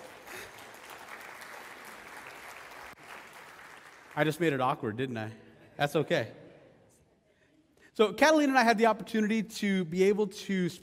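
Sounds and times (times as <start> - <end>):
audience applause for newlywed couple: 0.0 - 4.6
speech: 4.2 - 6.4, 8.0 - 10.8.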